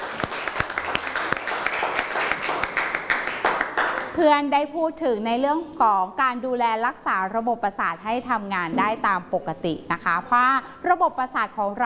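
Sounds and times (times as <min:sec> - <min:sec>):
students clapping: 0:00.0 - 0:04.2
speech: 0:04.2 - 0:11.8.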